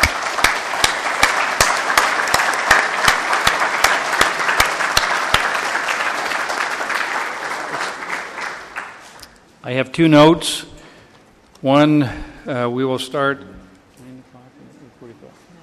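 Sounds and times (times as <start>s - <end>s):
delegates applauding committee chairman at a formal meeting: 0.0s - 9.3s
speech: 9.7s - 10.7s, 11.6s - 13.6s.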